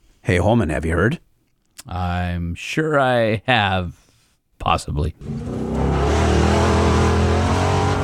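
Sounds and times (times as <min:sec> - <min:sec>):
speech: 0:00.3 - 0:04.0, 0:04.6 - 0:06.0
Bronco Desert Racer engine at high speed in the Southern California desert: 0:05.2 - 0:08.0.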